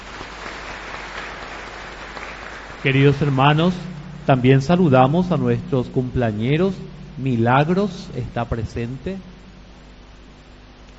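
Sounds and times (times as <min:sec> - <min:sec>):
audience applause: 0:00.0 - 0:03.8
speech: 0:02.8 - 0:09.3.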